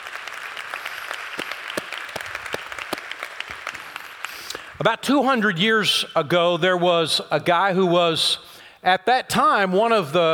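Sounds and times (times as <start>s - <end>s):
audience applauding: 0.0s - 4.7s
speech: 4.8s - 10.3s.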